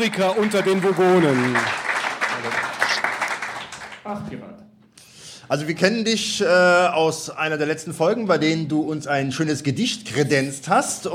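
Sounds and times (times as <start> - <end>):
speech: 0.0 - 1.8, 4.1 - 4.7, 5.5 - 11.1
audience applause at a live show: 0.0 - 4.2.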